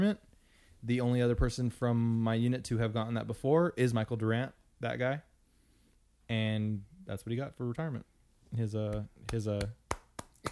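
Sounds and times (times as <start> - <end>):
speech: 0.0 - 5.3, 6.3 - 9.8
single person clapping: 8.9 - 10.5.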